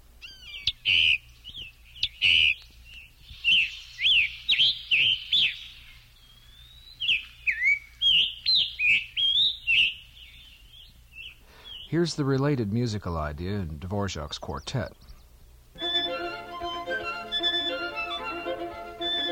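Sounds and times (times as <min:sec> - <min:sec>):
scarlet tanager singing: 0:00.0 - 0:15.4
low steady hum: 0:00.0 - 0:19.3
speech: 0:11.9 - 0:15.0.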